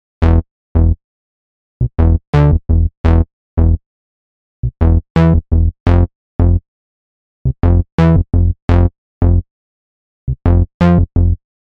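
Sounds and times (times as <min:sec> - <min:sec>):
bass: 0:00.0 - 0:01.0, 0:01.8 - 0:03.8, 0:04.6 - 0:06.6, 0:07.4 - 0:09.5, 0:10.3 - 0:11.6.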